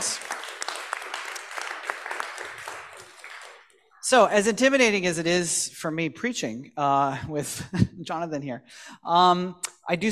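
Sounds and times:
church congregation applauding to welcome guests: 0:00.0 - 0:04.2
speech: 0:04.1 - 0:10.0.

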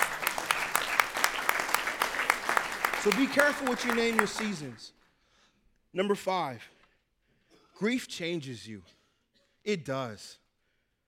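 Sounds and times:
audience applause and hand clapping: 0:00.0 - 0:04.8
speech: 0:03.0 - 0:05.0, 0:06.0 - 0:06.8, 0:07.8 - 0:09.0, 0:09.6 - 0:10.4.

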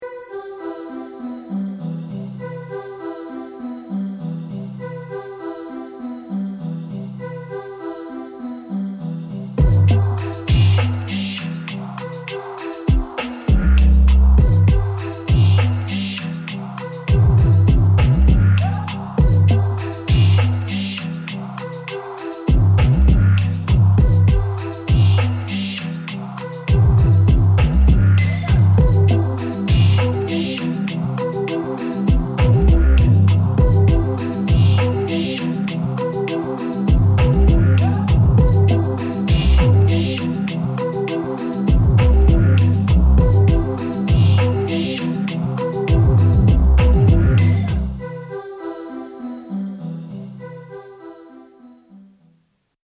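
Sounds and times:
new age music: 0:00.0 - 0:52.3.

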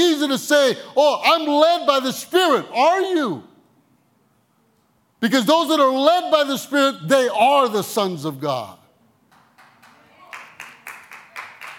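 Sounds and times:
speech: 0:00.0 - 0:03.5, 0:05.2 - 0:08.8
audience clapping: 0:09.3 - 0:11.7.

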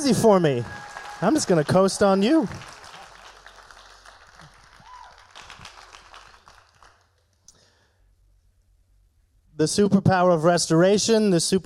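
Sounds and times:
speech: 0:00.0 - 0:02.8, 0:09.6 - 0:11.6
audience clapping: 0:00.6 - 0:07.5.

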